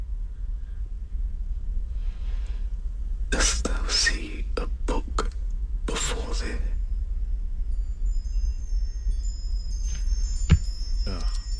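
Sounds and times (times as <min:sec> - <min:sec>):
low rumble: 0:00.0 - 0:11.5
speech: 0:03.9 - 0:04.3
wind chimes tinkling: 0:06.4 - 0:11.5
sharp knock: 0:10.5 - 0:10.7.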